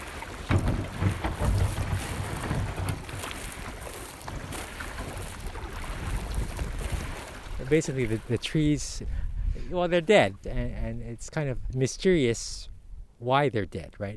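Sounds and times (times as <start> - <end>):
water splashing from paddling a small boat on a river: 0.0 - 9.1
wind buffeting the microphone: 0.0 - 11.8
speech: 7.7 - 14.1.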